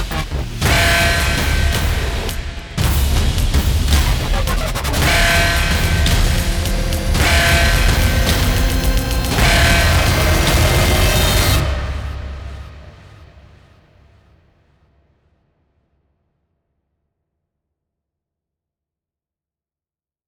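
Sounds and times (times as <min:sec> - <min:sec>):
jet grinder: 0:00.0 - 0:11.8.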